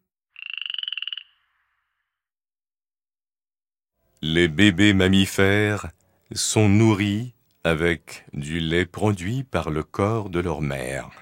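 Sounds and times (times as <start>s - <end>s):
frog croaking in a pulsing trill: 0.3s - 2.2s
speech: 4.2s - 11.2s.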